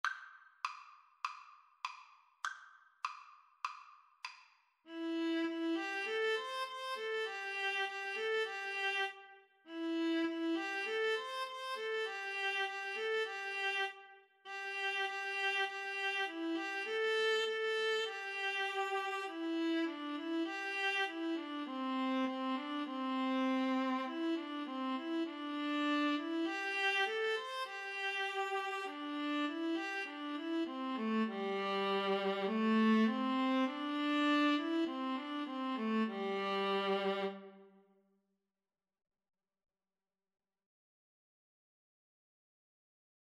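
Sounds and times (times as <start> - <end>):
viola duet: 4.9 - 37.7.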